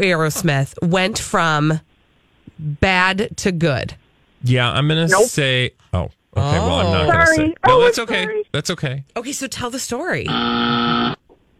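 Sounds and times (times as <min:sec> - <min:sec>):
speech: 0:00.0 - 0:01.9, 0:02.6 - 0:11.2
game show buzzer: 0:10.3 - 0:11.2.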